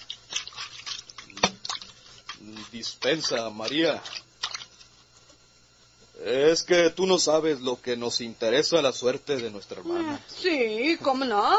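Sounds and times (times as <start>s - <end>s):
rags washed by hand in water: 0.0s - 4.8s
speech: 2.4s - 4.2s, 6.2s - 11.5s.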